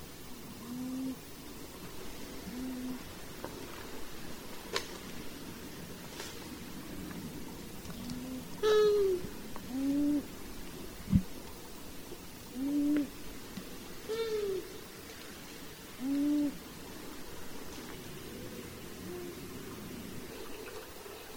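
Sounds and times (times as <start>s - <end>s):
long-eared owl uttering short nasal downslurred calls: 0.5s - 1.3s, 2.4s - 3.1s, 8.0s - 10.4s, 12.5s - 13.2s, 14.0s - 14.8s, 16.0s - 16.7s, 19.0s - 19.4s.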